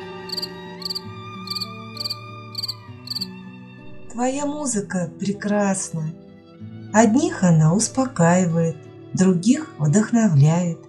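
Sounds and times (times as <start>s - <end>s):
cricket chirping by rubbing legs: 0.3s - 3.3s
speech: 4.2s - 6.2s, 6.9s - 10.8s.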